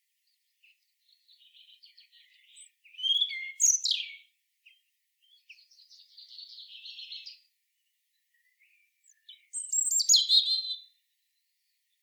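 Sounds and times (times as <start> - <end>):
European robin song of high whistles and trills: 3.0 - 4.2, 9.2 - 10.8.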